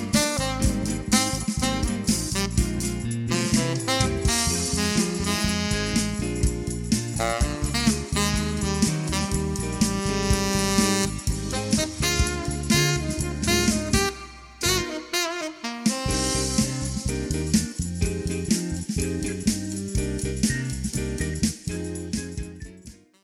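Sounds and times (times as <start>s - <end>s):
retro groove tenor saxophone playing: 0.0s - 6.6s, 7.2s - 17.4s
piano accompaniment: 0.0s - 23.1s.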